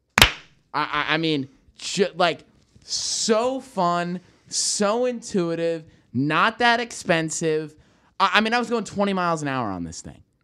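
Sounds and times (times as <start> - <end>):
single hand clap: 0.1 - 0.5
speech: 0.7 - 10.4.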